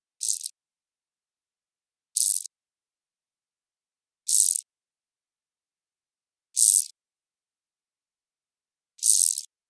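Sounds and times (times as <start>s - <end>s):
ketoheinasirkka grasshopper chirping: 0.2s - 0.5s, 2.2s - 2.5s, 4.3s - 4.6s, 9.0s - 9.5s.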